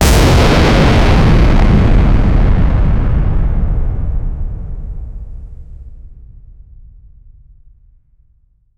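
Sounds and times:
initial cosmic explosion: 0.0s - 6.2s.

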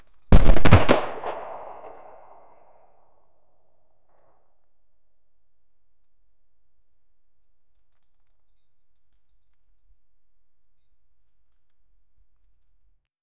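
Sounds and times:
gunshots: 0.4s - 2.6s.

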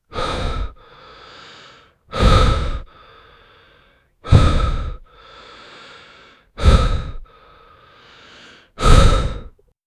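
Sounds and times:
heavy breathing: 0.0s - 9.6s.

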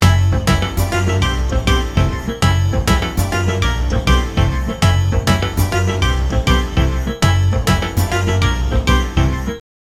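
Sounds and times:
background music: 0.0s - 9.6s.

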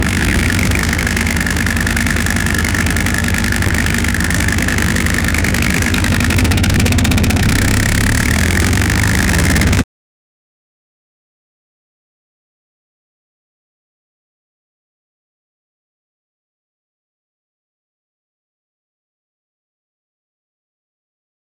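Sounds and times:
Formula 1 engine revving: 0.0s - 9.8s.

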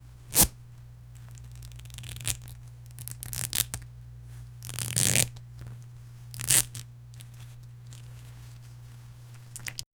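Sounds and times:
leather straps tightening: 1.2s - 3.8s, 4.6s - 8.8s.

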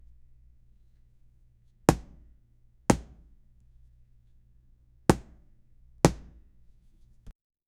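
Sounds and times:
ball being hit: 1.9s - 2.3s, 2.9s - 3.4s, 5.1s - 5.4s, 6.1s - 6.5s.

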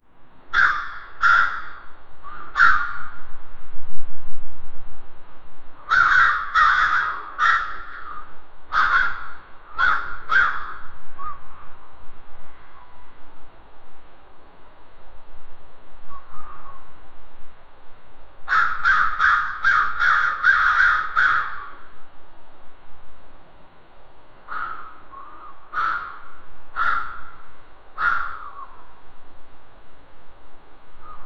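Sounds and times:
crows in the garden: 0.5s - 3.2s, 5.8s - 11.8s, 16.1s - 16.9s, 18.5s - 21.9s, 24.5s - 28.9s, 31.0s - 31.2s.

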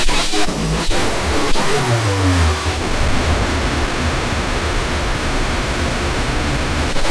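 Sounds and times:
anxious ambient aura drone: 0.1s - 7.0s.

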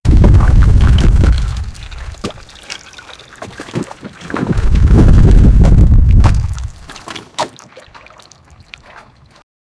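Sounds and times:
mudslide: 0.1s - 9.4s.

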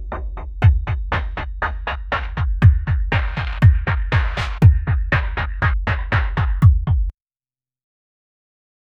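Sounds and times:
Asian ambient house drums: 0.0s - 7.1s.

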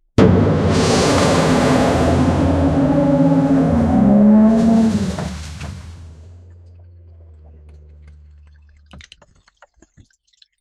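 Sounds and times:
ammonia tank exploding: 0.2s - 6.3s.

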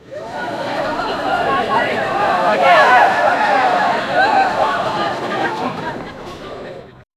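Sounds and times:
crowd running to escape in panic: 0.0s - 7.1s
laughter: 0.0s - 7.1s.

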